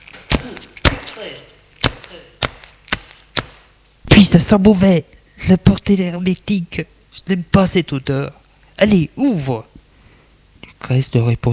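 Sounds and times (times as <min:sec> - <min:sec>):
feet stamping on the floor: 0:00.0 - 0:01.2, 0:01.8 - 0:03.7
speech: 0:00.5 - 0:02.4, 0:04.3 - 0:09.7, 0:10.8 - 0:11.5.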